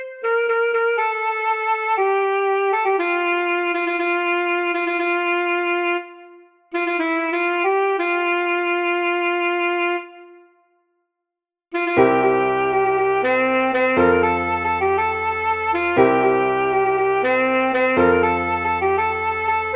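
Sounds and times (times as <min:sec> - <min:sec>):
alto saxophone playing a jazz standard: 0:00.0 - 0:10.7, 0:11.8 - 0:19.7.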